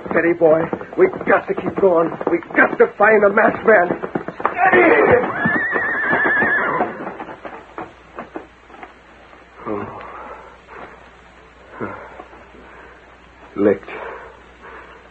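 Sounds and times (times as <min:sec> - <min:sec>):
horse hoof clops: 0:00.0 - 0:11.1
speech: 0:00.1 - 0:04.0, 0:04.6 - 0:05.3
horse whinnying: 0:04.4 - 0:07.4.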